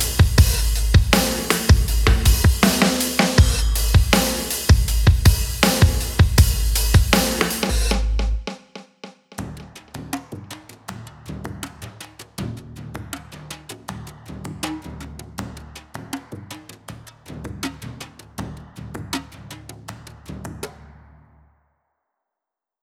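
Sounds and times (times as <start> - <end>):
drums at 160: 0.0 - 10.3.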